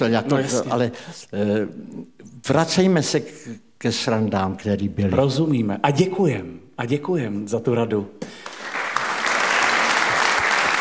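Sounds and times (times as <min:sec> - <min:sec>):
speech: 0:00.0 - 0:08.5
applause including a man clapping: 0:08.3 - 0:10.7.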